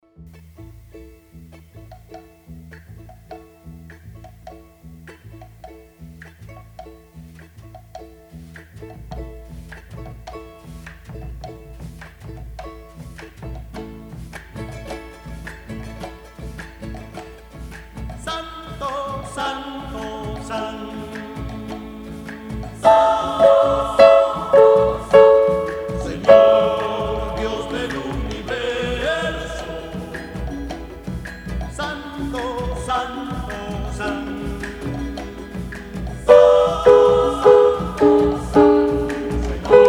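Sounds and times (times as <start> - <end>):
soprano singing a sacred piece: 18.2 - 39.8.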